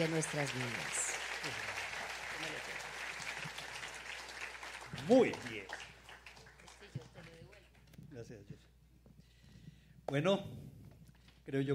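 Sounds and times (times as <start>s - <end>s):
speech: 0.0s - 1.7s, 5.0s - 5.8s, 8.2s - 8.7s, 10.1s - 10.7s, 11.5s - 11.7s
audience applause: 0.0s - 7.8s.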